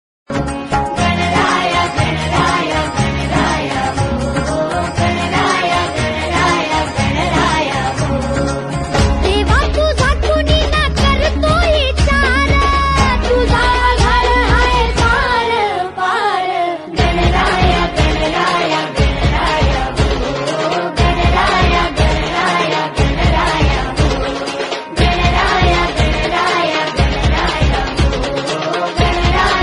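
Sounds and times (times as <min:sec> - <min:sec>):
Hindi song: 0:00.4 - 0:29.6.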